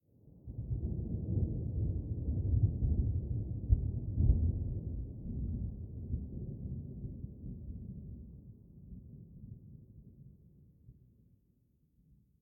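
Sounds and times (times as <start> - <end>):
thunder: 0.5 - 8.4.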